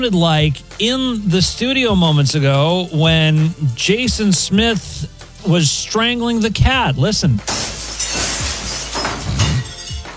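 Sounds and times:
speech: 0.0 - 8.2
window glass shattering on impact: 7.4 - 10.1.

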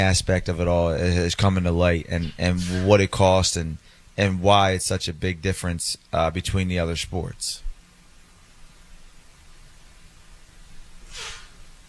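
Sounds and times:
speech: 0.0 - 7.6
sneezing fit from allergies: 2.1 - 3.0, 11.1 - 11.6.

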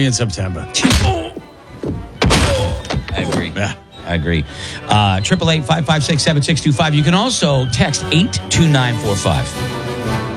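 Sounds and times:
speech: 0.0 - 1.4, 3.1 - 10.2
punch sound effects: 0.8 - 3.5.

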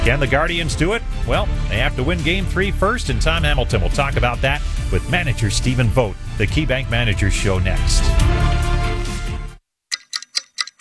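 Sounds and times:
speech: 0.0 - 8.7
clock ticking: 9.9 - 10.7.

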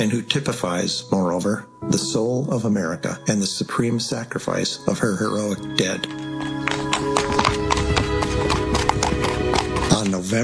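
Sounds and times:
speech: 0.0 - 7.2, 10.0 - 10.4
horse hooves clip-clopping on pavement: 5.6 - 10.3.

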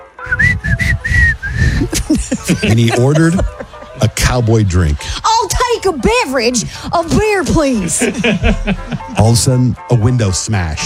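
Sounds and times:
person whistling a cowboy tune: 0.2 - 2.0
laughter: 1.7 - 5.0, 7.7 - 9.4
speech: 2.1 - 10.8.

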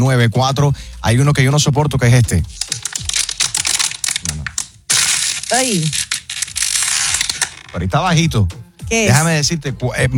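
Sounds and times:
speech: 0.0 - 2.8, 5.6 - 6.1, 7.7 - 10.1
plastic water bottle crushed in the hand: 2.5 - 7.8.

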